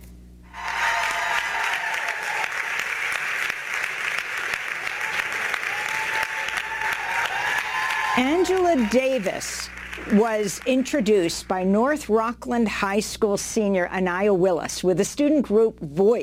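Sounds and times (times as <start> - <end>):
audience applause and standing ovation: 0.5 - 11.3
speech: 8.2 - 16.2.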